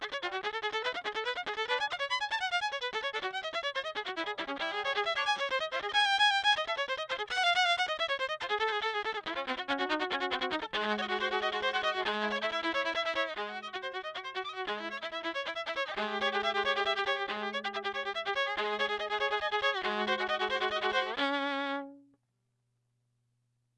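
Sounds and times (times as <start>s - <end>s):
classical piece on Yamaha SV200 silent violin in mono: 0.0s - 22.0s.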